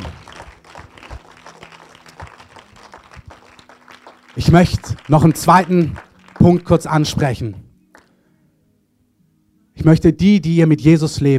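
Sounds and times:
audience applause: 0.0 - 7.2
speech: 4.4 - 7.6, 9.8 - 11.3.

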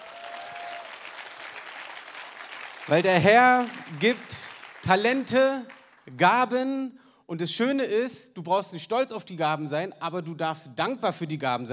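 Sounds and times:
audience applause: 0.0 - 6.1
speech: 2.9 - 11.7.

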